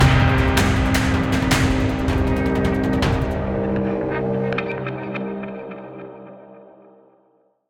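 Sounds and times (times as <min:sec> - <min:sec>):
combat outro music: 0:00.0 - 0:04.9.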